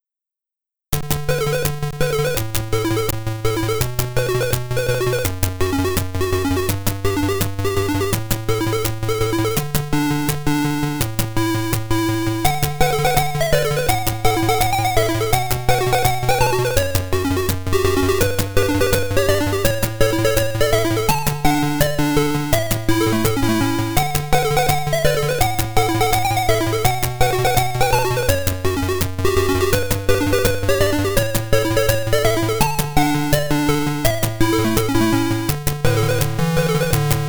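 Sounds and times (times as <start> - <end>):
classical piece on Atari ST: 1.1 - 37.2.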